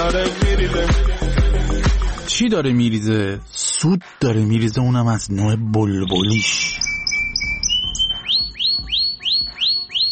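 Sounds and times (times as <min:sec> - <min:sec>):
speech: 0:00.1 - 0:01.4, 0:02.3 - 0:06.8
canary singing: 0:05.8 - 0:10.1.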